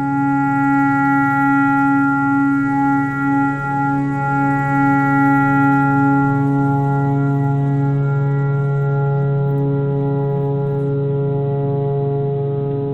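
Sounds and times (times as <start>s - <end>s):
clarinet imitating a tornado siren: 0.0s - 12.8s.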